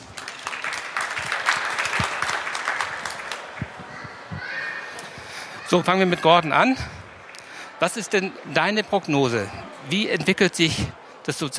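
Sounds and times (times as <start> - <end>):
applause from a small group: 0.0 - 4.0
speech: 5.7 - 7.0, 7.8 - 11.5.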